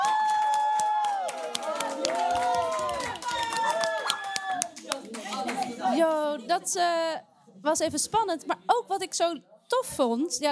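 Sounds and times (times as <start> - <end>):
audience cheering: 0.0 - 4.8
audience applause: 0.0 - 5.8
speech: 6.0 - 10.5.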